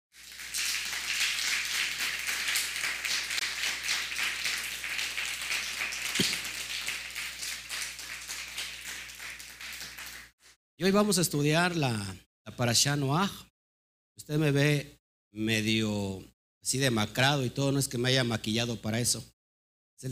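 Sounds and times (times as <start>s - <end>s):
audience applause: 0.1s - 10.3s
speech: 10.8s - 13.5s, 14.2s - 19.3s.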